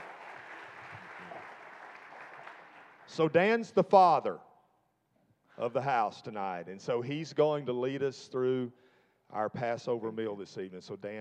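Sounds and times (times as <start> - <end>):
audience applause welcoming a speaker at an evening Passover meal: 0.0 - 3.2
speech: 3.1 - 4.5, 5.6 - 11.1.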